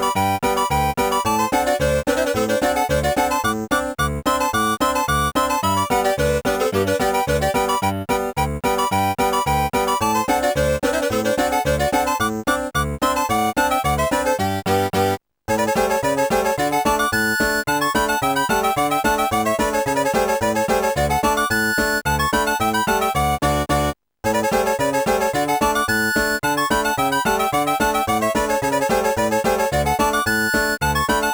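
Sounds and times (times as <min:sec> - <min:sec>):
clarinet polka: 0:00.0 - 0:31.3.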